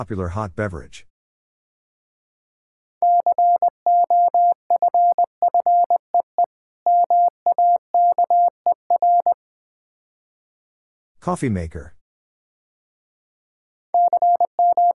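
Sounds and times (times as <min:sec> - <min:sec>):
speech: 0:00.0 - 0:01.1, 0:11.2 - 0:12.0
Morse code tones at 20 wpm: 0:03.0 - 0:09.4, 0:14.0 - 0:14.9.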